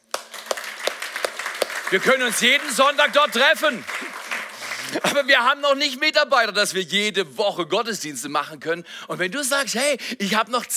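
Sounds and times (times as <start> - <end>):
sharp rhythmic claps in unison: 0.0 - 5.0
audience applause: 0.0 - 5.1
speech: 1.9 - 4.0, 4.8 - 10.7.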